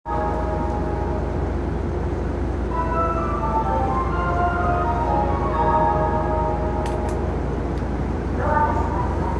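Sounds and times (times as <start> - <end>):
train: 0.0 - 9.3.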